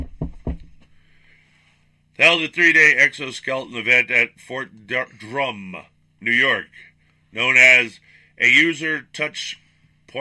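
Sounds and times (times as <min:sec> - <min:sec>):
knocking on wood: 0:00.0 - 0:00.8
speech: 0:02.2 - 0:10.1.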